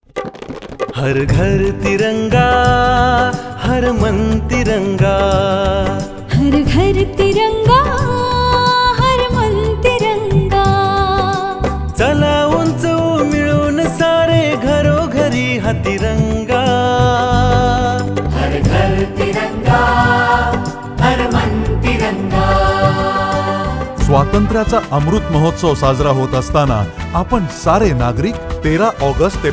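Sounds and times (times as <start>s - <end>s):
Marathi jingle: 1.2s - 29.5s.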